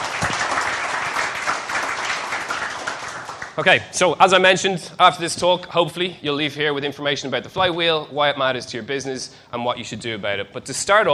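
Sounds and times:
audience applause: 0:00.0 - 0:03.6
speech: 0:03.6 - 0:11.1.

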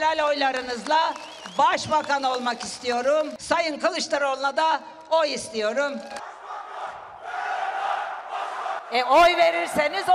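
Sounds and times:
speech: 0:00.1 - 0:06.3, 0:08.9 - 0:10.1
rally crowd shouting and chanting: 0:06.1 - 0:10.1.

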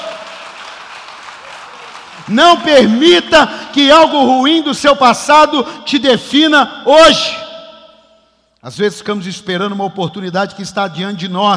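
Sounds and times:
audience applause: 0:00.0 - 0:02.4
speech: 0:02.3 - 0:07.4, 0:08.6 - 0:11.5.

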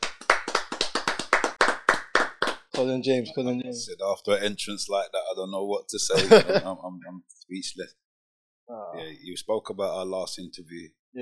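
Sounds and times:
round of applause: 0:00.0 - 0:03.0
speech: 0:02.8 - 0:08.0, 0:08.7 - 0:11.1
laughter: 0:03.9 - 0:07.8.

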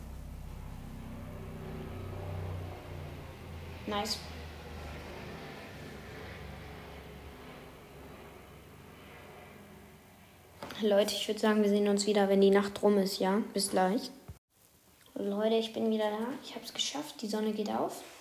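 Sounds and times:
helicopter flying overhead: 0:00.0 - 0:11.9
speech: 0:03.9 - 0:04.4, 0:10.8 - 0:14.2, 0:15.2 - 0:18.1.

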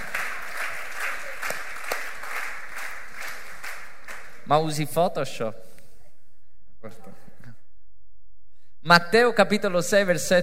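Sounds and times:
audience applause: 0:00.0 - 0:04.4
speech: 0:04.5 - 0:05.7, 0:06.8 - 0:07.2, 0:08.8 - 0:10.4.

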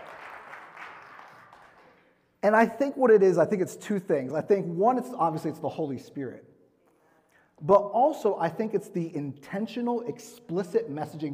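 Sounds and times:
audience clapping: 0:00.0 - 0:02.2
speech: 0:02.4 - 0:06.5, 0:07.6 - 0:11.3.

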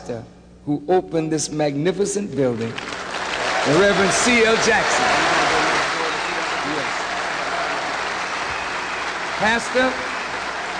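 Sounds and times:
speech: 0:00.0 - 0:03.0, 0:03.6 - 0:05.4, 0:09.4 - 0:10.1
audience applause: 0:02.8 - 0:10.7.

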